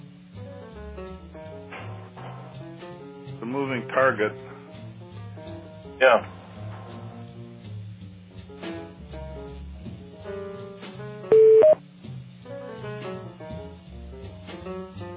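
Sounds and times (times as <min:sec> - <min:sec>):
speech: 0:03.4 - 0:04.5, 0:06.0 - 0:06.4
electronic conference-call beeps as a caller joins: 0:11.3 - 0:11.8.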